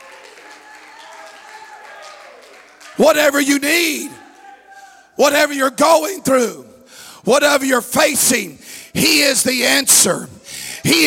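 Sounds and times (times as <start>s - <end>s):
church congregation clapping hands during a service: 0.0s - 5.1s
speech: 3.0s - 4.2s, 5.2s - 11.0s.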